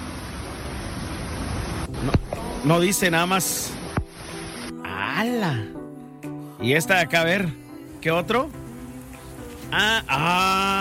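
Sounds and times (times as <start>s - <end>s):
fast-flowing water roaring: 0.0s - 4.8s, 8.2s - 10.7s
speech: 1.9s - 3.9s, 5.3s - 5.8s, 6.6s - 8.6s, 9.7s - 10.7s.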